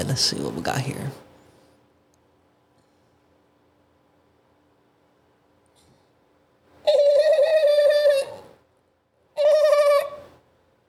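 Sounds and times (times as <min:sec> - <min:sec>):
speech: 0:00.0 - 0:01.2
voice imitating a dolphin: 0:06.9 - 0:08.5, 0:09.4 - 0:10.2.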